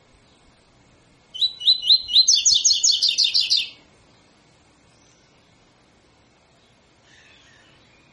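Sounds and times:
double-collared seedeater tutor song: 0.0s - 0.6s, 1.3s - 5.7s, 6.4s - 8.1s.

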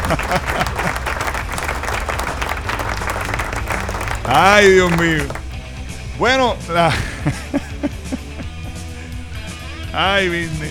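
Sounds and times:
laughter: 0.0s - 5.6s, 6.4s - 9.6s
crowd clapping at a rock event: 0.0s - 5.8s
speech: 0.1s - 0.8s, 4.3s - 5.4s, 6.2s - 7.7s, 10.0s - 10.6s.

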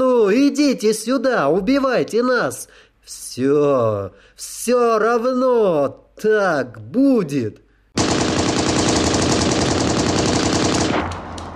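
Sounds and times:
speech: 0.3s - 7.6s
gunfire: 8.0s - 11.5s.

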